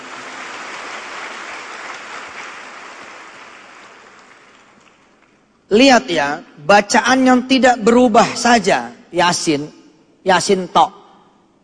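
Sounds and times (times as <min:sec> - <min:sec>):
gathering applauding after a Quran recitation: 0:00.0 - 0:05.7
speech: 0:05.7 - 0:11.0.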